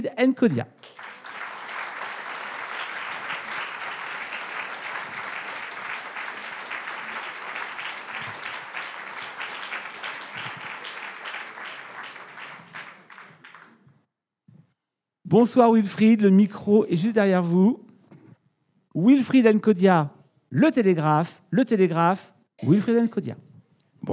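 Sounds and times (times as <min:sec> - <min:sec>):
speech: 0:00.0 - 0:01.0, 0:15.4 - 0:17.8, 0:19.0 - 0:24.1
audience applause: 0:00.8 - 0:13.8.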